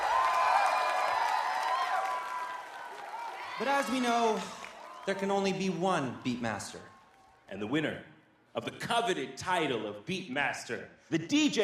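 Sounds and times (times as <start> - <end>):
audience applause for DJs: 0.0 - 7.3
speech: 3.6 - 6.9, 7.5 - 11.6.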